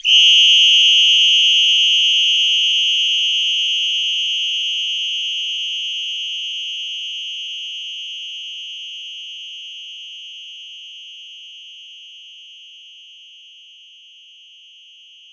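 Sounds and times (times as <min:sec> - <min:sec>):
long percussion whistle: 0:00.0 - 0:07.0.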